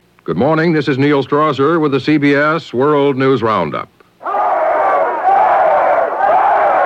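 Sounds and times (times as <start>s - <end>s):
speech: 0.2s - 4.0s
large crowd of demonstrators shouting in unison: 4.2s - 6.8s.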